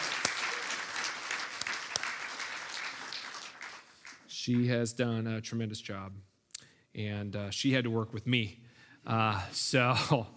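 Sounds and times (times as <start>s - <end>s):
audience round of applause: 0.0s - 4.2s
speech: 4.4s - 6.3s, 7.0s - 10.3s.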